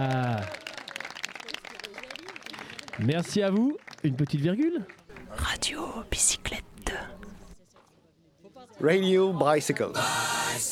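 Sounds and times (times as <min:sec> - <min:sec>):
audience applause: 0:00.0 - 0:05.3
speech: 0:03.0 - 0:07.2, 0:08.8 - 0:10.7.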